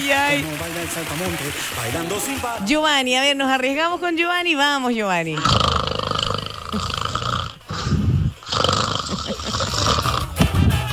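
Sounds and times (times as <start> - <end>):
laughter: 0.0 - 3.1, 9.1 - 10.9
speech: 0.0 - 5.8
person snoring: 5.3 - 10.9.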